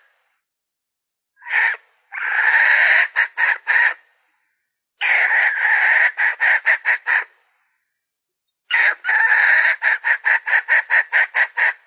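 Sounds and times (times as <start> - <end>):
Red junglefowl hen cackling: 1.4 - 4.1, 5.0 - 7.4, 8.7 - 11.8.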